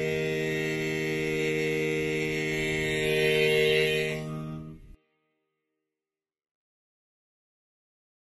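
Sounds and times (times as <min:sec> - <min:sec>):
barbershop bass singing tags: 0:00.0 - 0:04.8.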